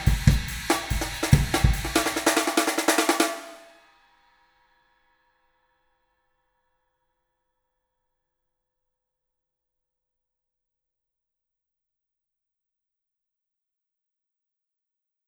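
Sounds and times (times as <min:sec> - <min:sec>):
drums tuned high in a beefy room: 0:00.0 - 0:03.7.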